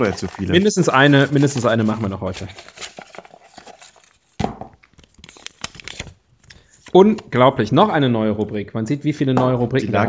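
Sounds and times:
speech: 0.0s - 3.0s, 7.0s - 10.0s
shuffled pile of paper slips rustling as a topic card is drawn: 0.0s - 7.5s.

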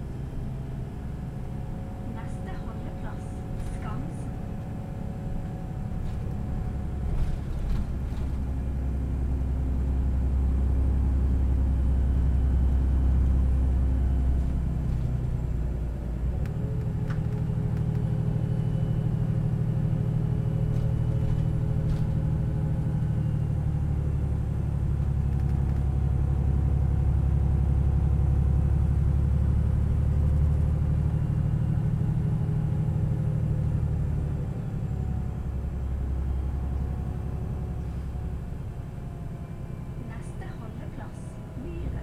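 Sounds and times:
bus engine rumbling: 0.0s - 42.0s
voices on a bus: 2.1s - 4.4s, 40.0s - 42.0s.

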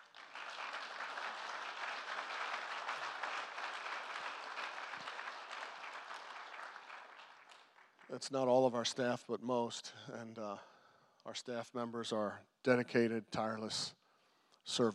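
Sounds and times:
audience clapping: 0.0s - 8.6s
speech: 8.1s - 14.0s, 14.6s - 14.9s.

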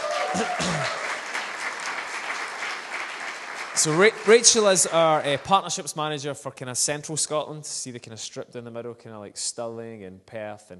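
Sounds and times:
audience applause: 0.0s - 5.9s
speech: 0.3s - 1.0s, 3.8s - 10.7s.

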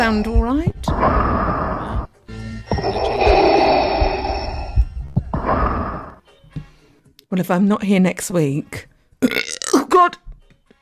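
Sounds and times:
speech: 0.0s - 1.5s, 7.3s - 10.2s
person breathing and sighing into a microphone: 0.9s - 7.0s.

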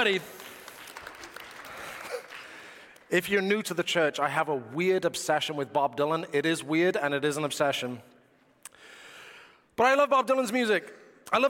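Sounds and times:
speech: 0.0s - 0.4s, 3.1s - 8.1s, 9.8s - 11.4s
round of applause: 0.0s - 3.3s.

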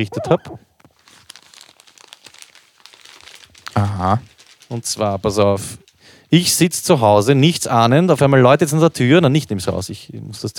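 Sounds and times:
speech: 0.0s - 0.7s, 3.8s - 10.5s
package being unwrapped, crinkling: 0.8s - 6.2s.

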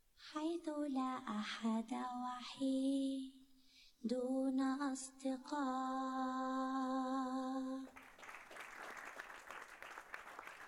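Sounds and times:
speech: 0.3s - 3.4s, 4.0s - 8.0s
applause from a group: 7.9s - 10.6s.

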